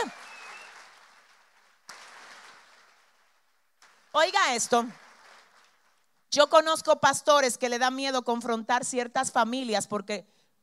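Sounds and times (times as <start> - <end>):
audience applauding: 0.0 - 6.1
speech: 4.2 - 5.0, 6.3 - 10.4.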